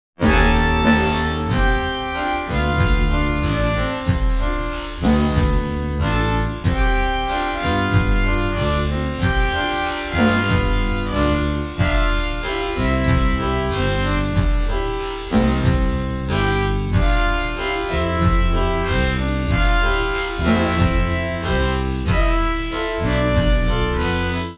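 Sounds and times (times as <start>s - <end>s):
jazz music: 0.2s - 24.5s.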